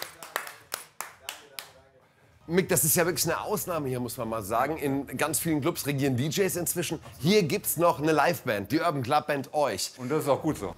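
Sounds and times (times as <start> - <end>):
hand claps: 0.0 - 1.8
speech: 2.5 - 10.7.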